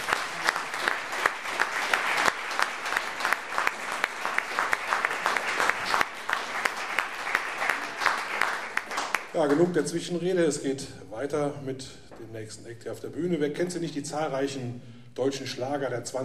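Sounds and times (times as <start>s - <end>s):
audience applause: 0.0s - 9.6s
speech: 9.4s - 16.2s.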